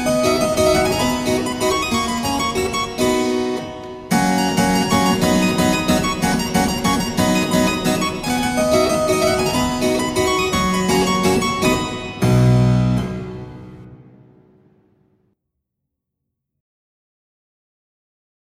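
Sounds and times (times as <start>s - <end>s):
waltz music: 0.0s - 14.5s.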